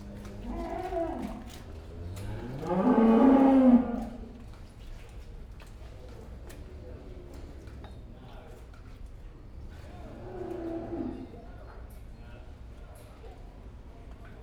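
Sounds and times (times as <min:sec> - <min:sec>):
cow mooing in a pen: 0:00.2 - 0:04.2, 0:10.1 - 0:11.4.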